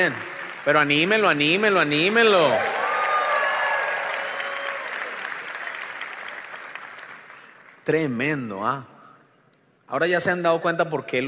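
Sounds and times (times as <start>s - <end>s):
speech: 0.0s - 2.8s, 7.9s - 8.9s, 9.9s - 11.2s
audience applause: 0.0s - 7.8s.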